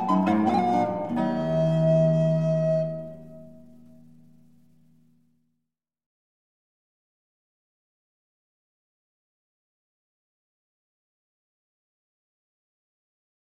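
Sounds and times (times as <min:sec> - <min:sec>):
recorder gigue in F minor: 0:00.0 - 0:05.2.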